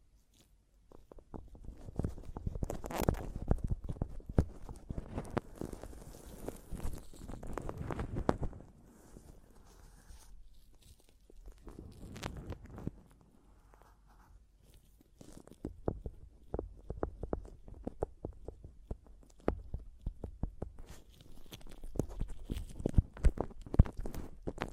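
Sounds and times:
tapping and scratching on a microphone: 0.0s - 24.7s.

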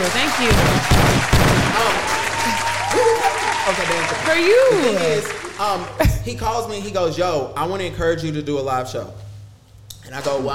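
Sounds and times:
audience hand claps: 0.0s - 6.1s
speech: 0.1s - 1.4s, 3.1s - 9.2s, 10.1s - 10.5s.

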